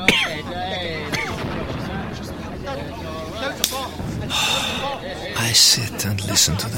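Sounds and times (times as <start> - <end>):
distant bombing: 0.0 - 6.7
speech: 5.6 - 6.7.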